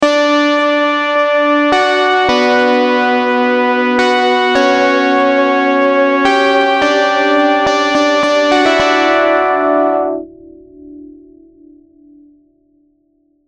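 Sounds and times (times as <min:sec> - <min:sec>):
Serum synthesizer sounds: 0:00.0 - 0:10.5.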